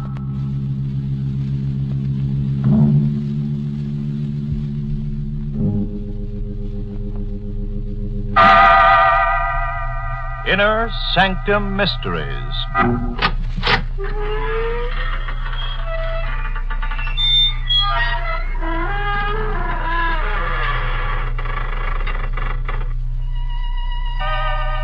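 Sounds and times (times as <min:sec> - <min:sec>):
steady low hum: 0:00.0 - 0:24.8
long slow door creak: 0:08.4 - 0:24.8
speech: 0:10.5 - 0:14.2.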